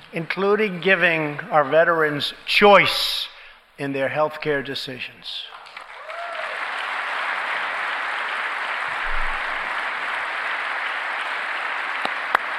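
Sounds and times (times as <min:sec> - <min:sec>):
speech: 0:00.1 - 0:05.6
large audience applause during a speech: 0:05.5 - 0:12.5.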